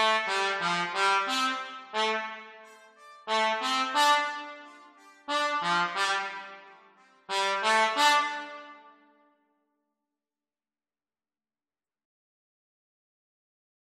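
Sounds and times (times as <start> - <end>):
trumpet and cornet duet practice: 0.0 - 9.1.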